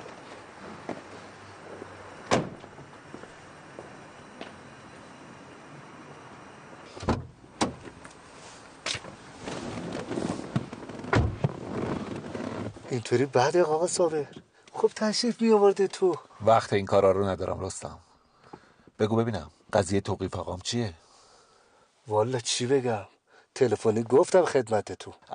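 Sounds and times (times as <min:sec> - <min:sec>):
car door opening and closing: 0:02.2 - 0:02.9, 0:06.9 - 0:08.1, 0:08.8 - 0:12.8
speech: 0:12.9 - 0:14.4, 0:14.9 - 0:18.1, 0:19.0 - 0:21.0, 0:22.1 - 0:25.3.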